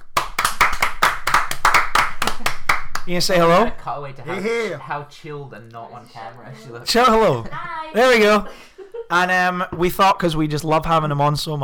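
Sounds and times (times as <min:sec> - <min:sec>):
applause from a small group: 0:00.0 - 0:03.1
speech: 0:03.1 - 0:11.6
laughter: 0:07.0 - 0:09.2.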